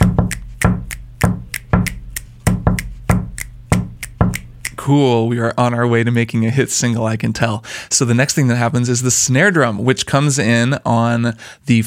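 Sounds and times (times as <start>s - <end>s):
kick drum in a pop beat: 0.0s - 4.7s
finger snaps in a pop beat: 0.0s - 4.8s
speech: 4.8s - 11.8s.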